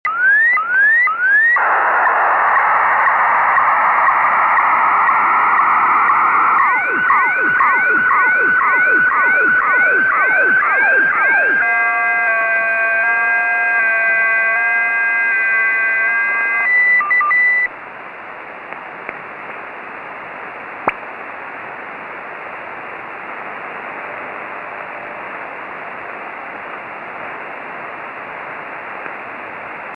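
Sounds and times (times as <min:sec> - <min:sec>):
strange signal: 0:00.1 - 0:17.7.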